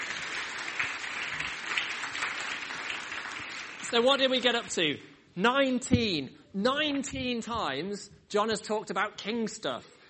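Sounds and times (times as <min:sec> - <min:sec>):
crowd applauding for children in a room: 0:00.0 - 0:04.7
speech: 0:03.9 - 0:10.0.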